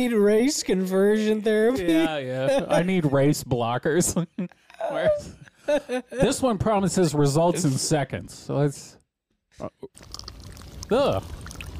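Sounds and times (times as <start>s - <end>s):
speech: 0.0s - 9.0s, 9.6s - 10.2s, 10.9s - 11.4s
laughter: 1.8s - 6.6s
slurping liquid: 9.9s - 11.7s.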